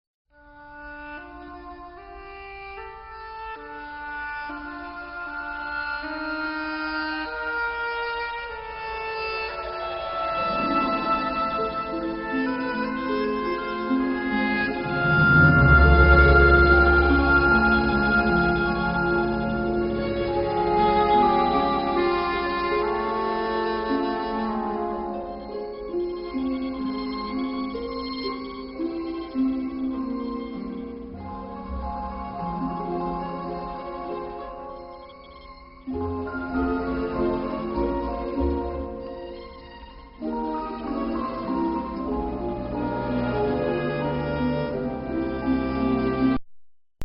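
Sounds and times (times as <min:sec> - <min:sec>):
orchestra playing instrumental opening: 0:00.4 - 0:46.4.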